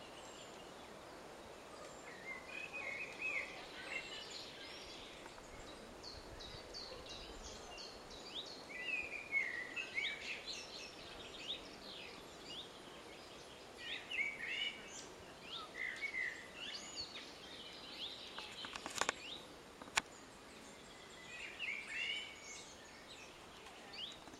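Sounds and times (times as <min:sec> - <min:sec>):
small birds chirping: 0:00.0 - 0:24.3
common blackbird singing: 0:02.0 - 0:19.4, 0:20.5 - 0:24.3.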